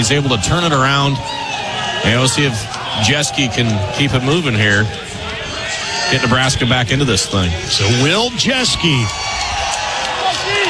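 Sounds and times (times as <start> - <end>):
speech: 0.0 - 1.4, 2.0 - 5.0, 6.1 - 9.3
loud crowd cheering at a college baseball game involving Nebraska: 0.0 - 10.6.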